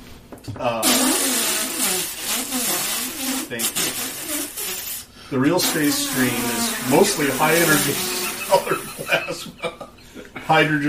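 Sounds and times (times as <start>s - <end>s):
speech: 0.3s - 1.4s, 3.5s - 4.4s, 5.3s - 9.9s, 10.5s - 10.8s
voice imitating a farting deflating balloon: 0.8s - 9.0s
laughter: 6.4s - 10.1s.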